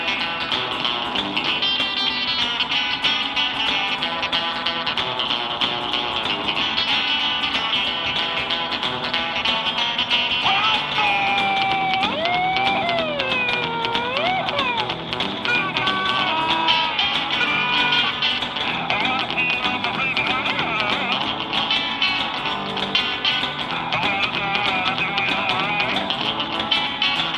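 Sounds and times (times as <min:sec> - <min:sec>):
calypso guitar: 0:00.0 - 0:27.3.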